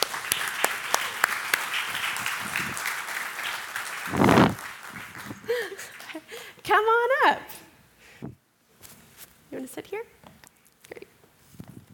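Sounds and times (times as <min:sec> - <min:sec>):
crowd applause: 0:00.0 - 0:06.4.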